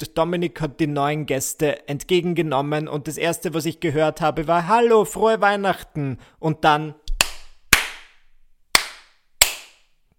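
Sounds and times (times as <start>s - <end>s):
speech: 0.0s - 7.0s
hands clapping: 7.1s - 8.2s, 8.8s - 9.9s.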